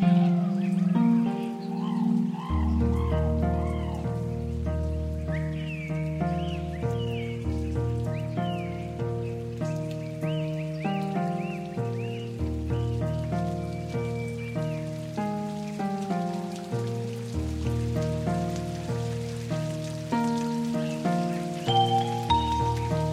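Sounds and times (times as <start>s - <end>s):
jungle rainforest ambience: 0.0s - 23.1s.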